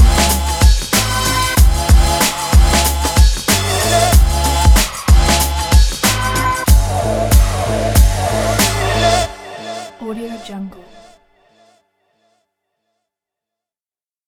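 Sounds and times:
hip hop music: 0.0s - 11.2s.

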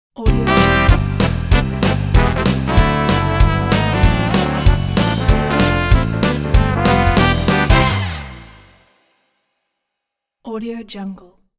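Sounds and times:
show intro logo jingle: 0.3s - 8.8s.

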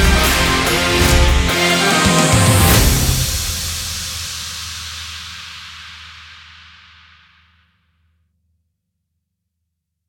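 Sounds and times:
powerful epic success logo sting: 0.0s - 4.5s.

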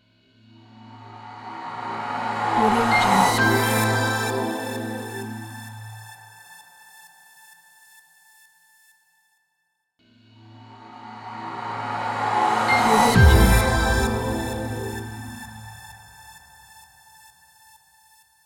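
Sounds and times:
ambient logo music: 0.7s - 6.2s, 10.4s - 16.5s.

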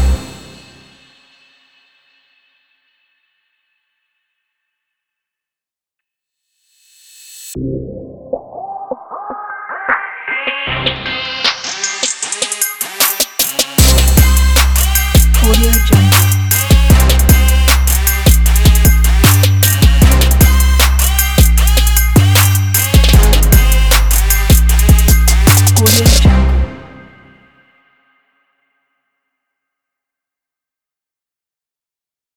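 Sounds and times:
hip hop trap sport logo music: 0.0s - 0.9s, 7.5s - 27.4s.

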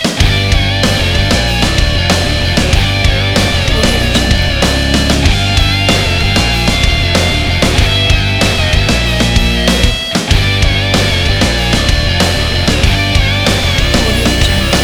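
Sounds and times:
epic action sport heavy rock music: 0.0s - 14.8s.

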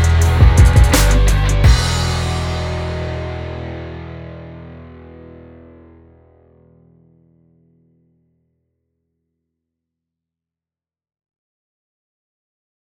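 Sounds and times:
hip hop rock music: 0.0s - 5.8s.

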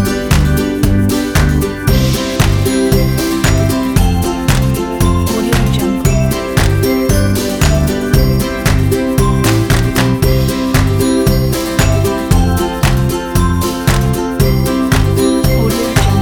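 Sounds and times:
happy upbeat uplifting ukulele music: 0.0s - 16.2s.

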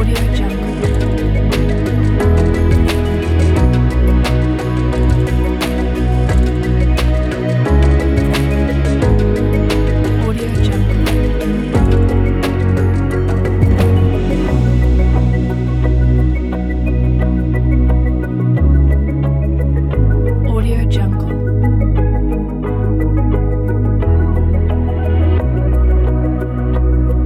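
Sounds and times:
documentary background music: 0.0s - 27.2s.

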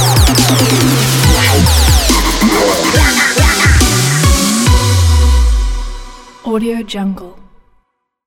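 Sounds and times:
trap music: 0.0s - 6.4s.

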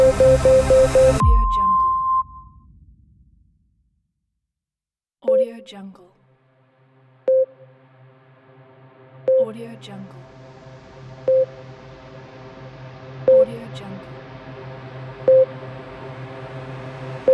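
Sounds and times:
ambient countdown beeps: 0.0s - 2.5s, 5.3s - 5.6s, 7.3s - 7.6s, 9.3s - 9.5s, 11.3s - 11.5s, 13.3s - 13.5s, 15.3s - 15.5s.

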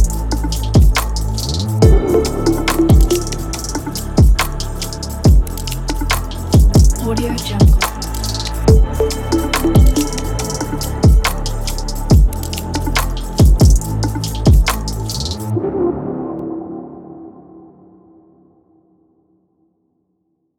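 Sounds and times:
abstract dark beat: 0.0s - 15.5s.

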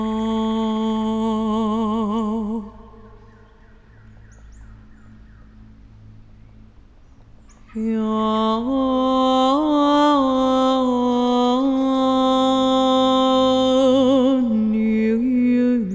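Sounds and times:
shamanic woman chanting in the forest: 0.0s - 3.3s, 7.7s - 15.9s.

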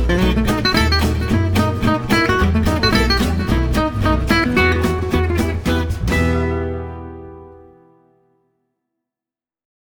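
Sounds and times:
jazz manouche guitar: 0.0s - 8.0s.

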